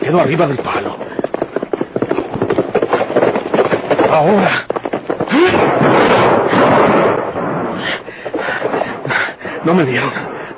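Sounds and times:
horses galloping at full speed: 0.0s - 10.5s
speech: 0.1s - 1.0s, 4.1s - 4.7s, 9.6s - 10.3s.

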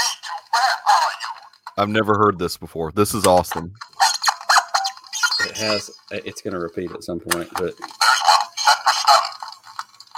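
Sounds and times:
toy playing crackly record-like sound: 0.0s - 2.0s, 3.1s - 10.1s
speech: 1.8s - 3.9s, 5.5s - 8.2s.

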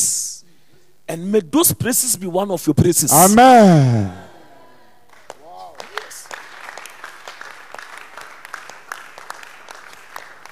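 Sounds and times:
speech: 1.1s - 4.2s
brief voice rising in pitch: 1.1s - 4.4s
audience clapping: 5.1s - 10.4s.

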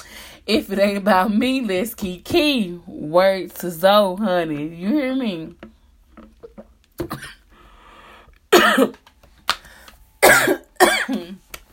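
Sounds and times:
speech: 0.5s - 5.7s, 7.0s - 7.4s
person coughing after wine went down the wrong pipe: 7.0s - 7.5s, 8.5s - 9.0s, 10.2s - 11.4s.

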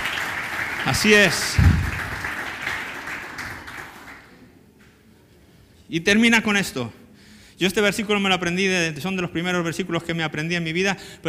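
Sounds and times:
crowd applauding: 0.0s - 4.4s
speech: 0.9s - 1.7s, 5.9s - 7.0s, 7.6s - 11.2s.

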